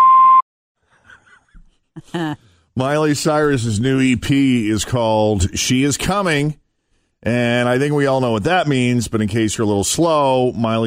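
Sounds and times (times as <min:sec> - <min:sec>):
voicemail beep: 0:00.0 - 0:00.4
speech: 0:02.0 - 0:06.6, 0:07.2 - 0:10.8.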